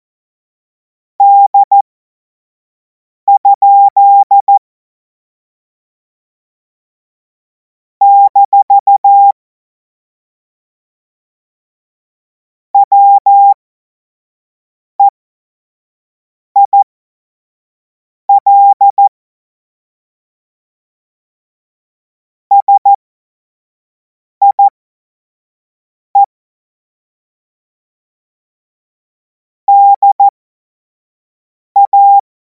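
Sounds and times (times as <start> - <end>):
CW Morse code beeps: 1.2 - 1.8, 3.3 - 4.6, 8.0 - 9.3, 12.8 - 13.6, 16.6 - 16.8, 18.3 - 19.1, 22.5 - 23.0, 24.4 - 24.7, 29.7 - 30.3, 31.8 - 32.2.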